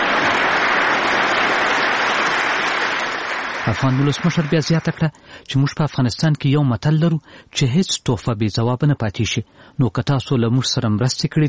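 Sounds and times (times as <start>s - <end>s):
US Congress members applauding Afghan President Ashraf Ghani's speech in Washington: 0.0s - 5.1s
speech: 3.7s - 11.4s.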